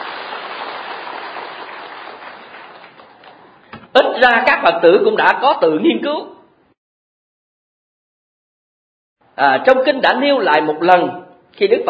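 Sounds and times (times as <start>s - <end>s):
audience applause: 0.0s - 3.6s
speech: 4.2s - 6.3s, 9.4s - 11.8s.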